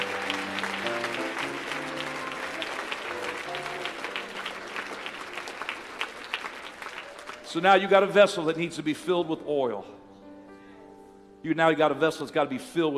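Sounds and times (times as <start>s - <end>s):
audience clapping hands: 0.0s - 8.1s
speech: 7.5s - 10.0s, 11.4s - 12.9s.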